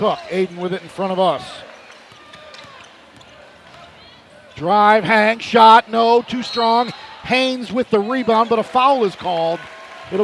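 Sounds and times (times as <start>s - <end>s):
speech: 0.0s - 1.7s, 4.6s - 10.2s
crowd noise: 0.0s - 10.2s
basketball dribbled by a player during a game: 1.9s - 4.1s.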